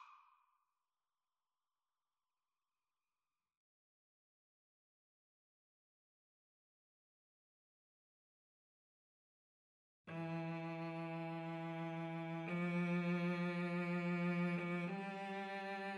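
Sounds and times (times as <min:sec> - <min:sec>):
cello: 0:10.1 - 0:15.9
violin: 0:10.1 - 0:15.9.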